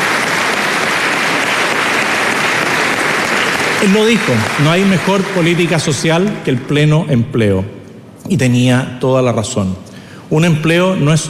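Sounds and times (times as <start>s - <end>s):
audience applause: 0.0s - 6.8s
speech: 3.8s - 11.2s.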